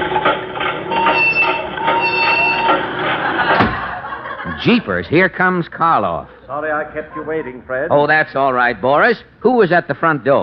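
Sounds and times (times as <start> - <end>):
dehydrator machine starting up and running: 0.0 - 4.0
laughter: 2.5 - 5.2, 6.0 - 7.8
speech: 4.6 - 10.4.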